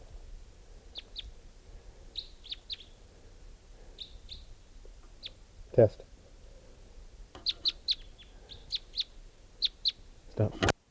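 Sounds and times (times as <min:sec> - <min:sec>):
bird calling and chirping: 0:00.9 - 0:01.4, 0:02.1 - 0:05.5, 0:07.4 - 0:10.1
speech: 0:05.8 - 0:06.1, 0:10.4 - 0:10.7.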